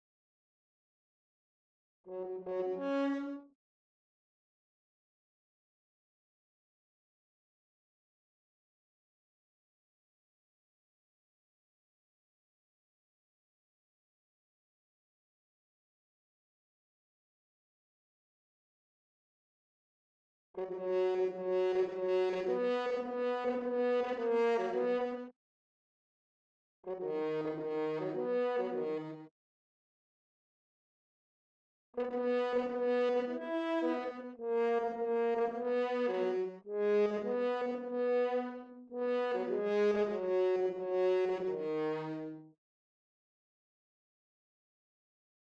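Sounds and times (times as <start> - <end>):
horn: 2.1 - 3.5, 20.6 - 25.3, 26.8 - 29.3, 32.0 - 42.6.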